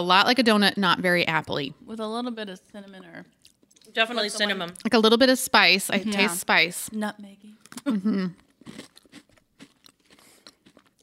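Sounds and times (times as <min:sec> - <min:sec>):
speech: 0:00.0 - 0:08.9
chewing a chocolate Oreo cookie: 0:07.6 - 0:11.0.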